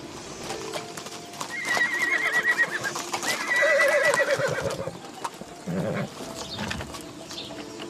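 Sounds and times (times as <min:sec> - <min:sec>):
horse hooves clip-clopping as a carriage stops: 0:00.0 - 0:07.8
horse whinnying: 0:01.5 - 0:05.0, 0:05.6 - 0:06.7.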